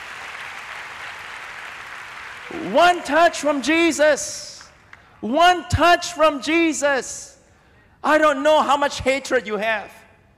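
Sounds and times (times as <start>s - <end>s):
crowd clapping: 0.0s - 5.0s
speech: 2.5s - 4.5s, 5.2s - 7.4s, 8.0s - 10.0s.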